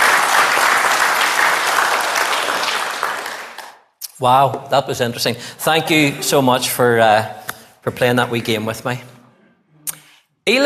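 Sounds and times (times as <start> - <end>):
crowd applauding: 0.0 - 3.8
speech: 4.2 - 9.1, 10.4 - 10.6.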